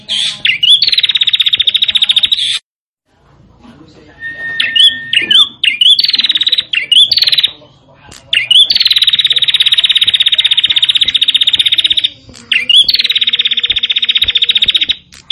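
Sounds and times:
prinia buzzy song: 0.0s - 2.6s, 3.6s - 15.3s.

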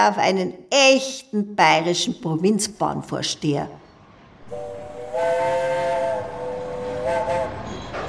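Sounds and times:
speech: 0.0s - 3.8s
rumbling train noise: 4.0s - 8.0s
steam train whistle: 4.5s - 8.0s.

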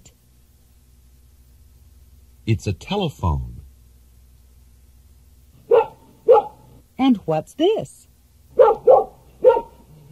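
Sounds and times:
speech: 2.5s - 3.6s, 7.3s - 8.1s
dog barking: 5.6s - 6.7s, 8.5s - 10.1s.

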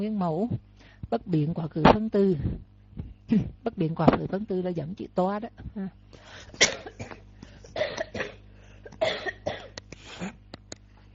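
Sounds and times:
speech: 0.0s - 7.2s
speaker giving a Buddhist Dharma talk coughing harshly: 6.4s - 10.4s.

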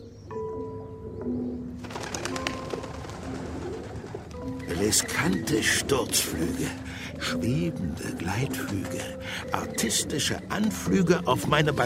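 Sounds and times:
pigeon cooing: 0.0s - 11.8s
speech: 4.8s - 11.8s.

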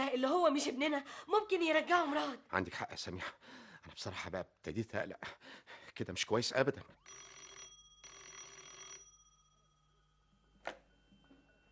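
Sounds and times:
speech: 0.1s - 7.3s
telephone bell ringing: 6.9s - 11.6s.

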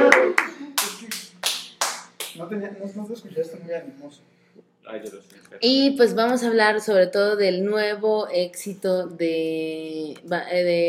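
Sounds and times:
slow hand claps: 0.0s - 2.4s
speech: 2.4s - 10.8s.

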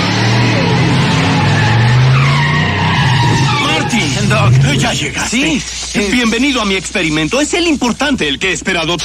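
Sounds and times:
DeLorean car deep engine rumble: 0.0s - 5.4s
DeLorean car tires screeching at speed: 0.0s - 5.7s
speech: 4.8s - 9.0s.

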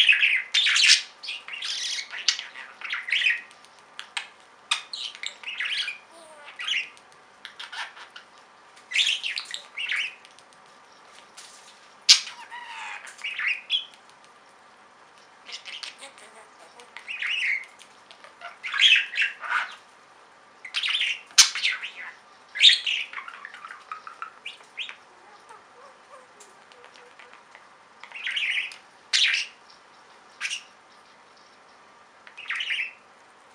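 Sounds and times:
Budgerigar chirping and squawking: 0.0s - 3.5s, 4.7s - 8.3s, 8.9s - 10.2s, 12.1s - 13.9s, 15.5s - 19.8s, 20.7s - 30.8s, 32.4s - 33.0s.

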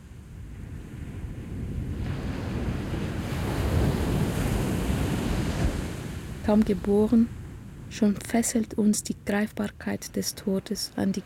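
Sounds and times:
ocean waves breaking at the stern of a ship: 0.0s - 11.2s
speech: 6.5s - 11.2s.

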